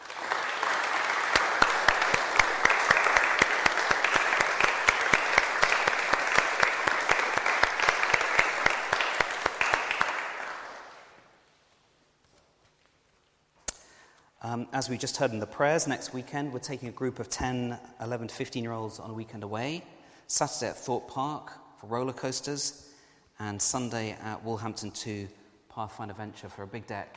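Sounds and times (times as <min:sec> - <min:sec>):
crowd clapping: 0:00.0 - 0:11.3
speech: 0:14.7 - 0:27.1.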